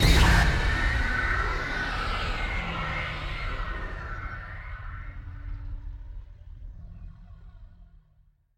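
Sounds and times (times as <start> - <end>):
instant shock sound effect: 0.0 - 6.3.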